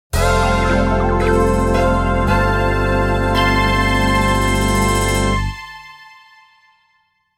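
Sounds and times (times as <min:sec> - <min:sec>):
course intro fanfare: 0:00.1 - 0:06.1.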